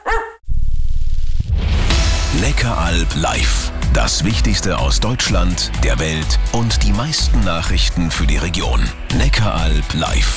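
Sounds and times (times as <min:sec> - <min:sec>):
dog barking in a pet-food store advert: 0:00.0 - 0:00.4
dense loud low rumbling: 0:00.4 - 0:08.4
speech: 0:02.4 - 0:10.3.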